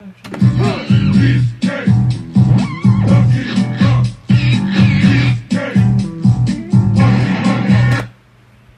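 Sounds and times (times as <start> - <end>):
funk music: 0.4 - 8.1.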